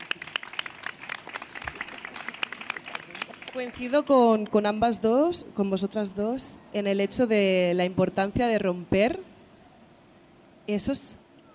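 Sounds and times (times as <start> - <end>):
audience applause: 0.0 - 3.8
speech: 3.6 - 9.3, 10.7 - 11.2.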